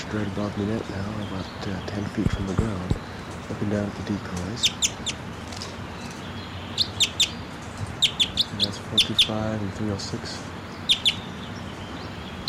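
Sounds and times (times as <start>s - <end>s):
wild bird calling: 0.0s - 12.4s
speech: 0.1s - 5.2s, 8.5s - 10.5s.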